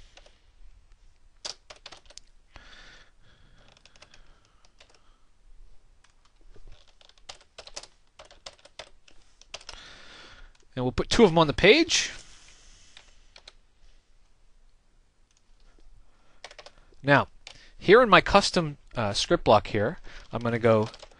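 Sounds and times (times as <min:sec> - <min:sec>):
typing on a computer keyboard: 0:01.4 - 0:02.3, 0:03.6 - 0:05.0, 0:06.0 - 0:09.8, 0:16.4 - 0:16.8, 0:20.3 - 0:21.1
speech: 0:10.8 - 0:12.2, 0:17.0 - 0:21.0.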